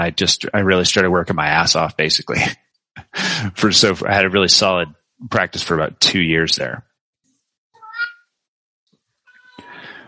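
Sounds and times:
speech: 0.0s - 2.6s, 3.2s - 6.9s
elderly cat Ginger meowing: 9.3s - 9.8s.

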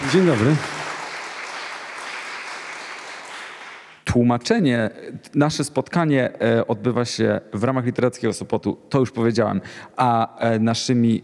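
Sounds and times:
audience clapping: 0.0s - 4.0s
speech: 0.1s - 0.7s, 4.1s - 11.2s.

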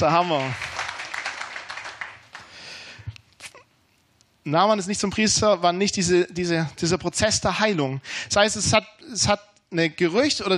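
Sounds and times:
speech: 0.0s - 0.6s, 4.4s - 10.5s
audience applause: 0.0s - 2.7s.

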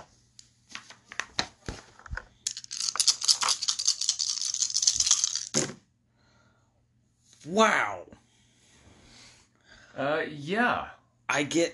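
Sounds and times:
several dice being shaken and rolled: 2.4s - 5.7s
speech: 7.4s - 8.1s, 10.0s - 11.7s.

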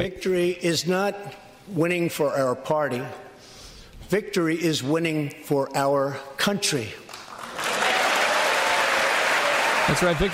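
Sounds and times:
speech: 0.0s - 3.3s, 4.1s - 7.0s, 9.9s - 10.3s
crowd applause: 7.1s - 10.3s.

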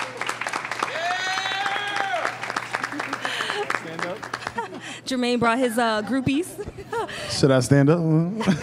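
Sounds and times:
people cheering: 0.0s - 4.4s
audience applause: 0.0s - 4.8s
speech: 5.1s - 8.6s.

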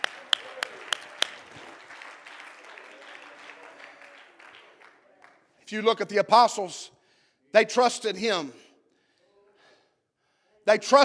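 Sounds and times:
audience clapping hands in praise: 0.0s - 5.6s
speech: 5.7s - 8.6s, 10.6s - 11.0s.

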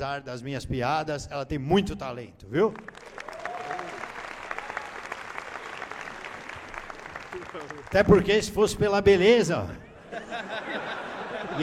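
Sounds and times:
speech: 0.0s - 3.2s, 7.4s - 10.9s
audience applause: 2.8s - 8.4s
laughter: 9.9s - 11.6s.

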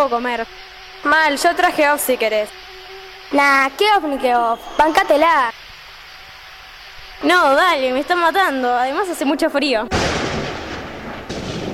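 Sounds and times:
speech: 0.0s - 5.6s, 7.2s - 10.2s
thunder before a storm: 9.9s - 11.7s.

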